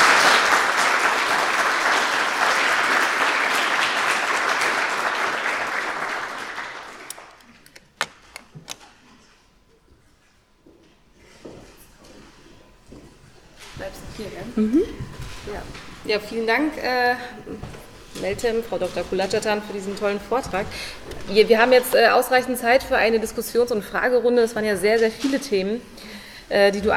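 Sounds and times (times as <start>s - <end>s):
audience applause after lecture: 0.0s - 7.7s
speech: 16.1s - 17.4s, 18.2s - 26.9s.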